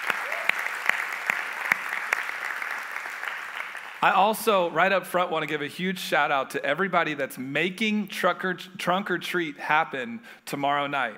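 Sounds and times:
church congregation applauding: 0:00.0 - 0:04.7
speech: 0:04.0 - 0:11.1.

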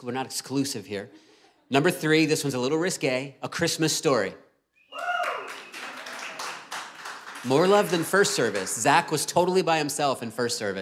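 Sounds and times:
speech: 0:00.0 - 0:05.1, 0:07.4 - 0:10.8
person whooping or cheering: 0:04.9 - 0:06.0
crowd applause: 0:04.9 - 0:09.2.

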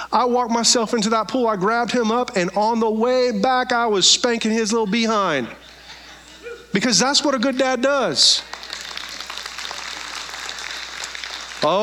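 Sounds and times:
speech: 0:00.1 - 0:05.7, 0:06.7 - 0:08.8, 0:11.6 - 0:11.8
laughter: 0:04.7 - 0:07.5
crowd applause: 0:08.4 - 0:11.8.

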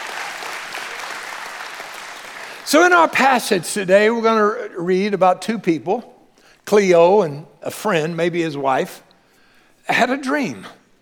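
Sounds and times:
audience hand clap: 0:00.0 - 0:02.9
speech: 0:02.7 - 0:06.1, 0:06.7 - 0:09.0, 0:09.9 - 0:10.8.

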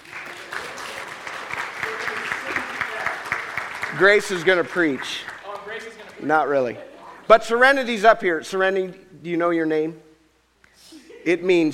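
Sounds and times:
audience applause: 0:00.0 - 0:06.2
speech: 0:04.0 - 0:05.3, 0:06.2 - 0:10.0, 0:11.2 - 0:11.7.

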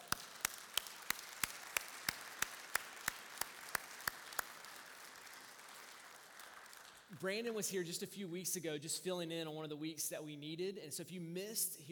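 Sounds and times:
church audience applauding: 0:00.0 - 0:07.1
speech: 0:07.1 - 0:11.9.

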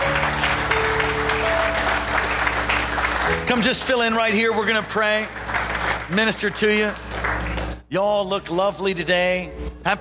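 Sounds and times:
audience clapping hands: 0:00.0 - 0:07.9
speech: 0:03.5 - 0:05.4, 0:06.1 - 0:07.0, 0:07.9 - 0:09.9.

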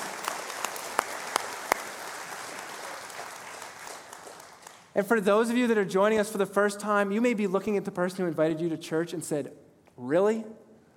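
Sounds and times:
audience clapping: 0:00.0 - 0:05.0
speech: 0:05.0 - 0:10.6.

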